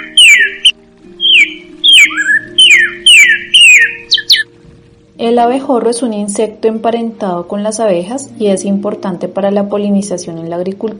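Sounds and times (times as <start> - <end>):
cardinal songbird singing in La Guajira: 0.0 - 4.5
speech: 5.2 - 10.9.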